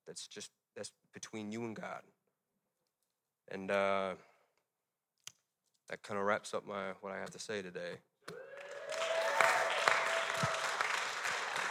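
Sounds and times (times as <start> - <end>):
speech: 0.1 - 2.2, 3.5 - 4.3, 5.9 - 8.4
audience applause: 8.3 - 11.6.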